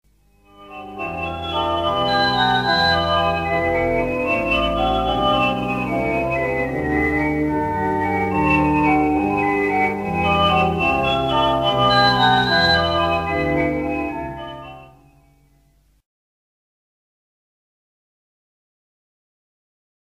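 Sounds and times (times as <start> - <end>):
organ: 0.2 - 15.8.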